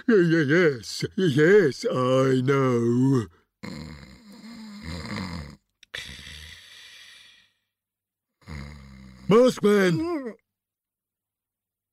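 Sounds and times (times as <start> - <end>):
speech: 0.0 - 4.0, 9.3 - 10.4
person snoring while asleep: 3.1 - 7.7, 8.4 - 9.6.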